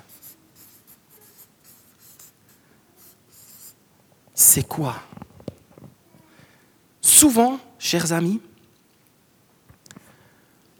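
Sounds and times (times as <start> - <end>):
hand drawing and writing on a surface: 0.0 - 3.8
speech: 4.5 - 5.2, 7.2 - 8.5.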